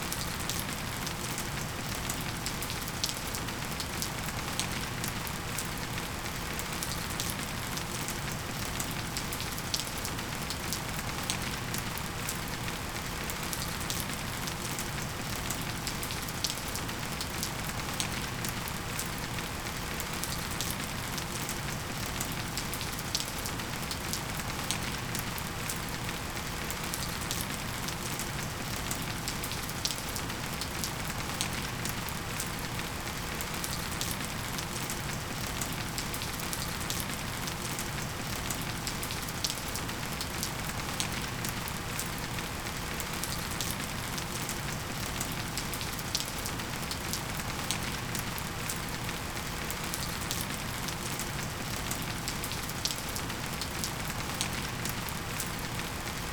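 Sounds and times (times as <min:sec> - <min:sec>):
rain: 0:00.0 - 0:56.3.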